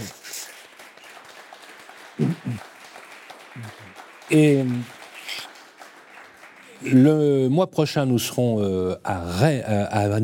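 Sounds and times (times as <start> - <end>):
audience applause: 0.0 - 7.6
speech: 3.6 - 5.0, 6.8 - 10.2.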